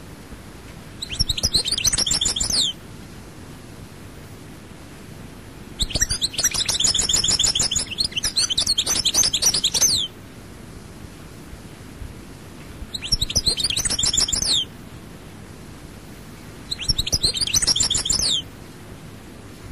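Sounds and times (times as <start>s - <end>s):
quiet background hiss: 0.0s - 19.6s
European goldfinch song: 1.0s - 2.8s, 5.8s - 10.2s, 12.9s - 14.7s, 16.6s - 18.5s.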